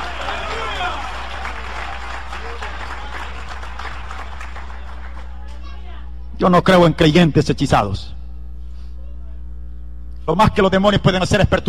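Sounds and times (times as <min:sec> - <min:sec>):
audience applause: 0:00.0 - 0:05.5
low hum: 0:00.0 - 0:11.6
speech: 0:06.4 - 0:08.2, 0:10.3 - 0:11.6.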